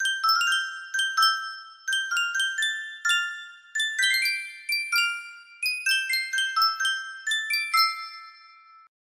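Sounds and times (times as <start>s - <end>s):
Sankyo miniature music box: 0.0s - 9.0s.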